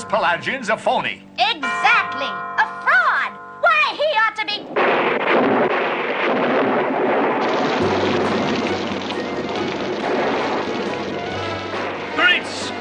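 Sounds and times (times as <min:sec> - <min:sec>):
speech: 0:00.1 - 0:03.0, 0:04.2 - 0:07.1
sudden spring rain shower: 0:03.6 - 0:12.7.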